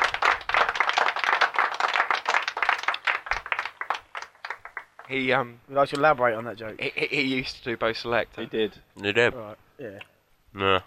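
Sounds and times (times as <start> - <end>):
applause sound effect from button: 0.0 - 5.2
speech: 5.1 - 10.8.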